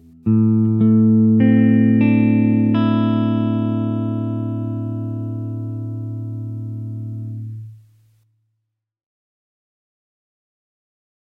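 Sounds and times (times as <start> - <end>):
electric guitar playing a technical study: 0.0 - 7.8.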